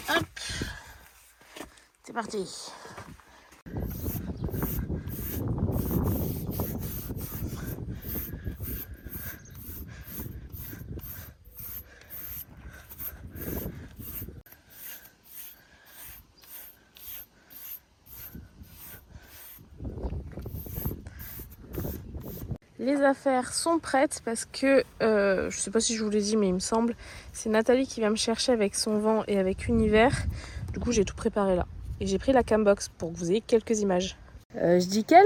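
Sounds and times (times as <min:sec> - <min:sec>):
speech: 0:02.1 - 0:02.8, 0:23.0 - 0:35.2
brushing a pony's coat: 0:03.8 - 0:19.7, 0:20.5 - 0:22.6.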